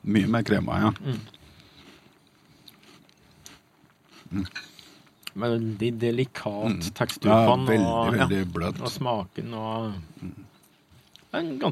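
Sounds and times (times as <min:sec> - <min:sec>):
speech: 0:00.0 - 0:01.4, 0:04.3 - 0:04.7, 0:05.4 - 0:10.5, 0:11.3 - 0:11.7
crunchy biting and chewing on a cracker during a tasting: 0:00.7 - 0:05.7.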